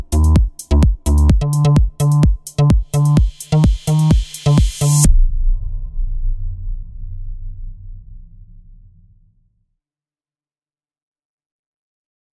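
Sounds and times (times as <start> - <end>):
basses: 0.0 - 9.3.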